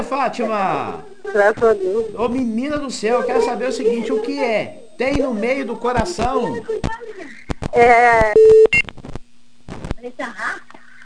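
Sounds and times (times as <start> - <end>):
speech: 0.0 - 8.9, 10.0 - 10.7
telephone busy tone after a dropped call: 8.4 - 8.8.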